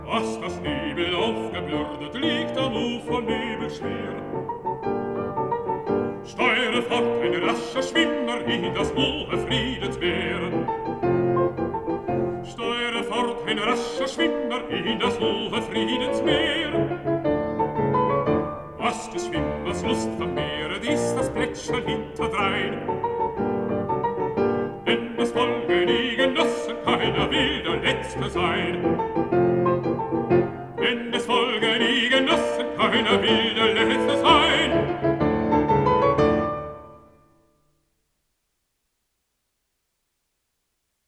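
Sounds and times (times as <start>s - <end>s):
person singing: 0.0s - 4.3s, 6.2s - 11.2s, 12.4s - 17.1s, 18.8s - 23.2s, 24.8s - 29.1s, 30.7s - 35.2s
piano accompaniment: 0.0s - 37.6s.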